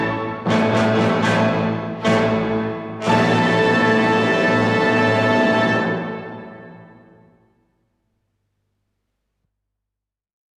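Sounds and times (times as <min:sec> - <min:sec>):
piano concerto in A major: 0:00.0 - 0:07.1.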